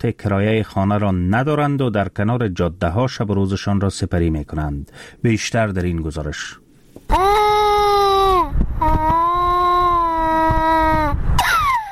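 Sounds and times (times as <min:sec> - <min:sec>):
speech: 0:00.0 - 0:07.4
hungry baby crying: 0:07.1 - 0:11.9.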